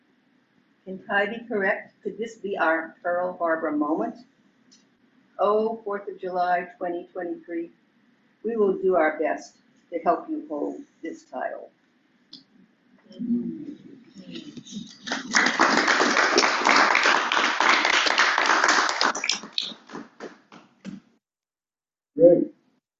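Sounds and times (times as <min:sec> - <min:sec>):
speech: 0:00.8 - 0:04.3, 0:05.4 - 0:07.8, 0:08.4 - 0:11.8, 0:13.1 - 0:15.7
murmuring voices: 0:13.1 - 0:15.4
audience clapping: 0:14.2 - 0:20.9.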